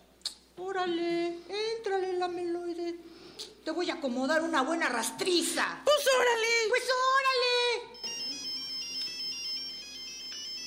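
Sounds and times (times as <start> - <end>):
speech: 0.6 - 7.9
telephone ringing: 7.9 - 10.6.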